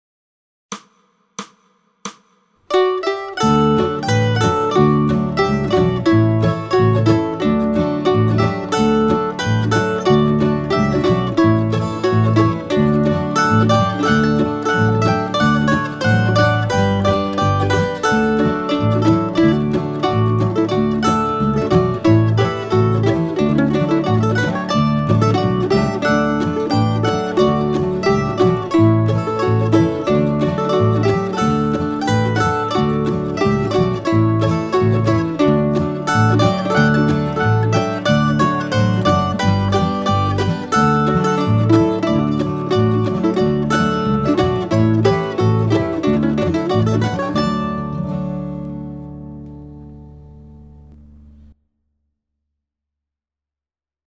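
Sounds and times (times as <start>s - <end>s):
dobro: 2.7s - 51.6s.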